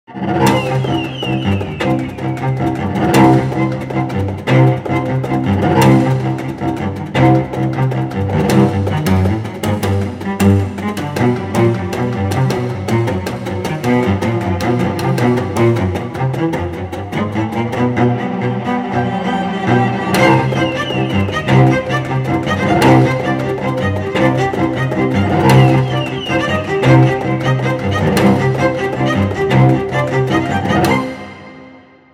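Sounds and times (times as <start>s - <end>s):
cello extended techniques: 0.1s - 31.9s.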